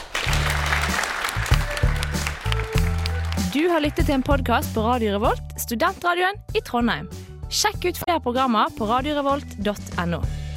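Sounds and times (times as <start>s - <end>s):
audience applause: 0.0s - 4.4s
speech: 3.6s - 10.4s.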